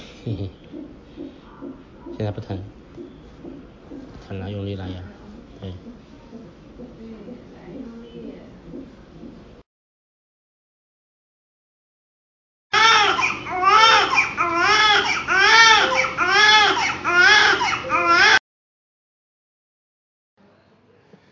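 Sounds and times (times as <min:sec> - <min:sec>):
speech: 0:00.2 - 0:02.8, 0:04.3 - 0:06.0
newborn baby crying: 0:12.7 - 0:18.4.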